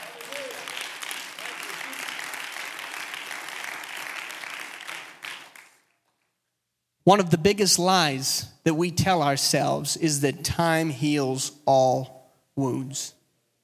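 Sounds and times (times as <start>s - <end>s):
audience clapping hands: 0.0s - 6.3s
speech: 7.1s - 13.2s.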